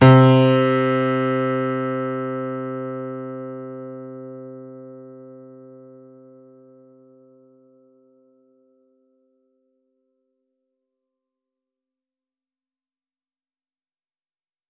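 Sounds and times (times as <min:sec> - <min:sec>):
piano note C3: 0:00.0 - 0:05.9.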